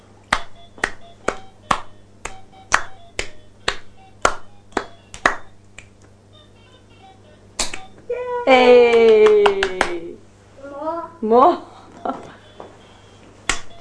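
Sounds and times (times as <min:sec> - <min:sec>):
hands clapping in a steady rhythm: 0:00.3 - 0:06.2, 0:07.6 - 0:08.0, 0:08.8 - 0:10.1, 0:13.4 - 0:13.8
speech: 0:08.5 - 0:09.2, 0:11.3 - 0:11.7.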